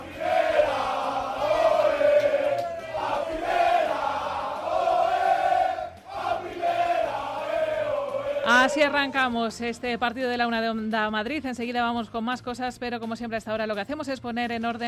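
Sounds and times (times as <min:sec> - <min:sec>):
fans chanting in celebration: 0:00.0 - 0:09.3
speech: 0:08.6 - 0:14.8.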